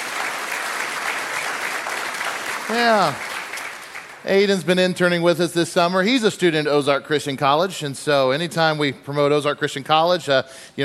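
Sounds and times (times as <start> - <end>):
crowd applauding: 0.0 - 4.5
speech: 2.7 - 3.3, 4.2 - 10.8.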